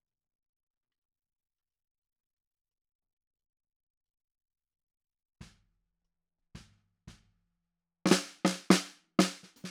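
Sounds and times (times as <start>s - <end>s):
snare drum: 8.1s - 9.6s.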